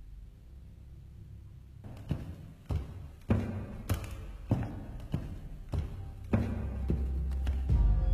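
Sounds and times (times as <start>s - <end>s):
heavy footsteps thudding: 1.8s - 8.0s.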